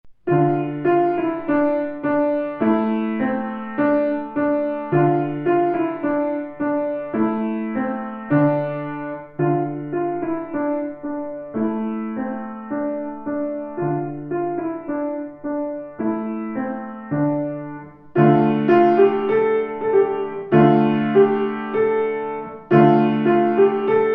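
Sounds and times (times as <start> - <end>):
Flemish dance piano piece: 0.1 - 24.1.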